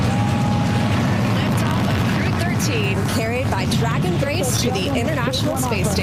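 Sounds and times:
Falcon 9 rocket launching from Cape Canaveral: 0.0s - 4.2s
speech: 2.6s - 6.0s.

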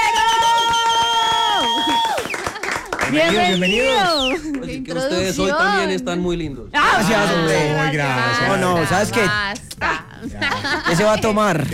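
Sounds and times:
crowd cheering and whooping: 0.0s - 4.4s
audience clapping: 0.0s - 5.2s
speech: 3.1s - 9.6s, 10.6s - 11.7s
laughter: 9.9s - 11.7s.

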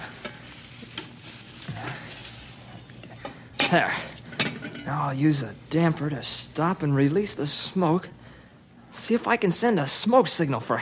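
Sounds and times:
green bush leaves rustling and crackling while stuffed into a stove: 0.0s - 2.9s
speech: 3.7s - 4.1s, 4.9s - 8.2s, 9.0s - 10.7s.

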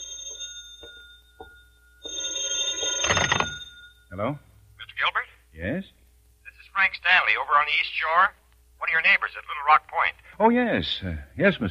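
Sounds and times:
telephone ringing: 0.0s - 4.2s
speech: 4.2s - 6.0s, 6.8s - 11.6s.

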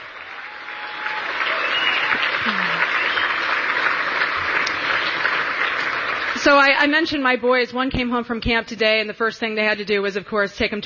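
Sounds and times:
audience applause: 0.0s - 6.7s
speech: 6.5s - 10.8s.

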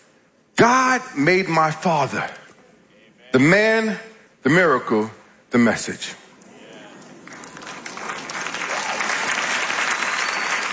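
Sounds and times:
speech: 0.6s - 2.4s, 3.4s - 6.2s
audience clapping: 6.8s - 10.7s.

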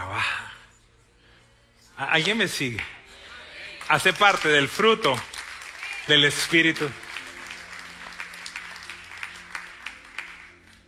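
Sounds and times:
speech: 2.0s - 3.0s, 3.9s - 5.3s, 6.1s - 7.0s
audience applause: 3.8s - 10.8s.

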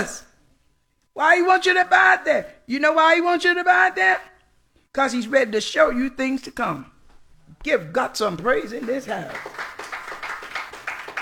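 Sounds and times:
speech: 0.0s - 0.2s, 1.2s - 4.3s, 4.9s - 6.9s, 7.6s - 9.8s
congregation clapping hands in a church service: 8.7s - 11.1s.

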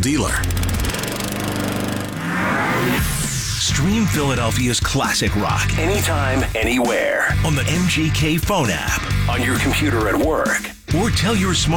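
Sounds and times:
speech: 0.0s - 0.6s, 2.8s - 11.7s
Gravely lawn mower engine running: 0.0s - 2.8s.

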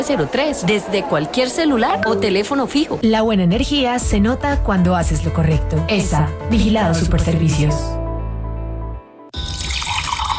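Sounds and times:
speech: 0.0s - 8.0s
fresh water pouring: 9.4s - 10.3s.

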